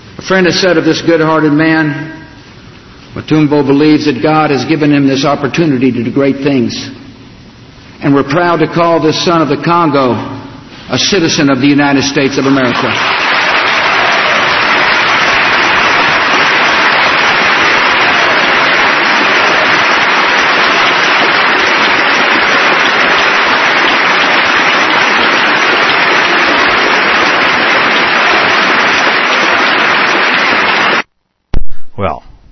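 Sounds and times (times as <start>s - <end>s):
speech: 0.2s - 2.2s, 3.1s - 7.0s, 8.0s - 10.3s, 10.9s - 13.4s
crowd applauding in played speech recording: 12.5s - 31.1s.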